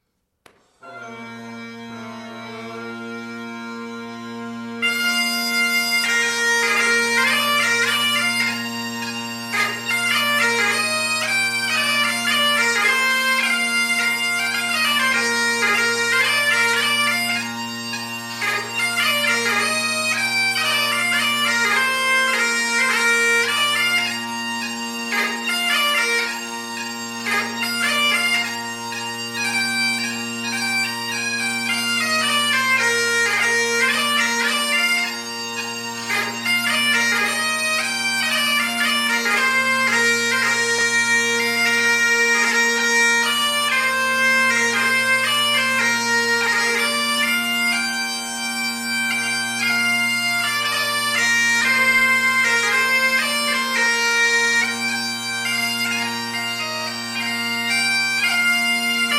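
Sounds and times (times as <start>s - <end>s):
piping duo in Scotland: 0.6s - 59.1s.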